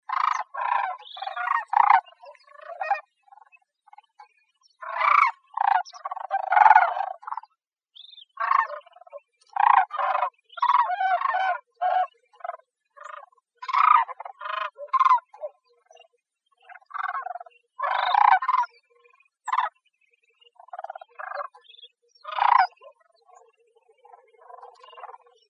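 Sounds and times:
bird giving harsh squawks: 0.0s - 4.1s, 4.8s - 15.6s, 16.7s - 18.8s, 20.7s - 22.9s.

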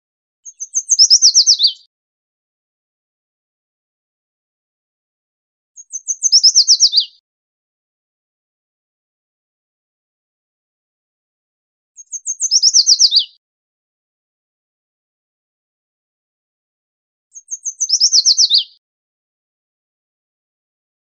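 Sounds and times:
yellow warbler singing: 0.4s - 1.9s, 5.8s - 7.2s, 12.0s - 13.4s, 17.3s - 18.8s.

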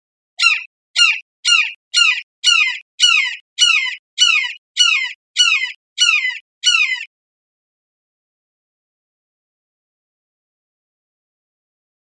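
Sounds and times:
red-shouldered hawk calling kee-ah: 0.4s - 7.1s.

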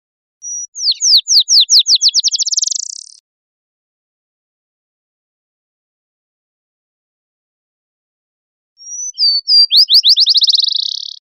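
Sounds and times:
black-chinned sparrow singing: 0.4s - 3.2s, 8.8s - 11.2s.

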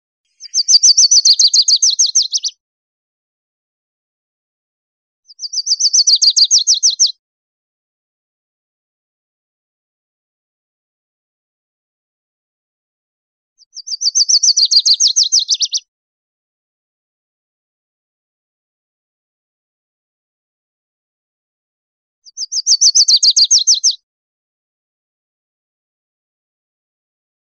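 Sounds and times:
Lucy's warbler song: 0.4s - 2.5s, 5.3s - 7.1s, 13.7s - 15.8s, 22.3s - 24.0s.

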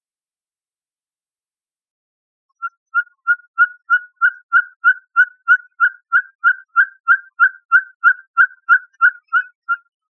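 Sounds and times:
ferruginous pygmy owl whistled toots: 2.6s - 9.9s.

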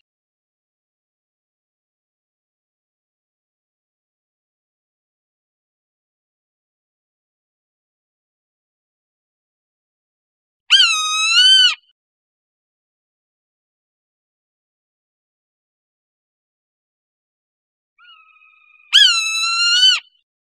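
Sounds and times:
Swainson's hawk screaming: 10.7s - 11.8s, 18.0s - 20.2s.

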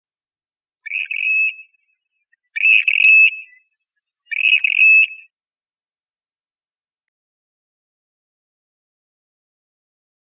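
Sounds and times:
Western grebe calls: 0.9s - 1.7s, 2.5s - 3.6s, 4.3s - 5.2s.

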